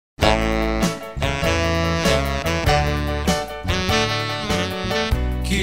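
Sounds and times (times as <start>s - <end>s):
saxophone: 0.2s - 5.5s.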